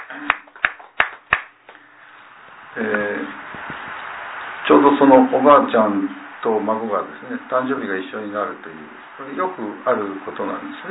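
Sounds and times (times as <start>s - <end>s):
handclaps: 0.0s - 1.8s
speech: 2.8s - 3.4s, 4.7s - 10.9s.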